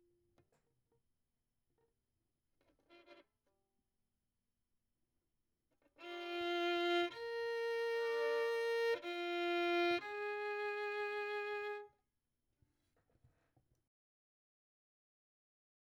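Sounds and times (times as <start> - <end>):
violin: 6.0 - 11.9.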